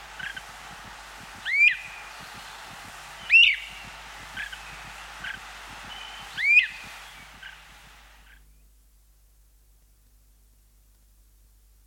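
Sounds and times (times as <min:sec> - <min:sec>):
songbirds singing: 0:00.0 - 0:08.8
great crested flycatcher calling: 0:01.4 - 0:08.4.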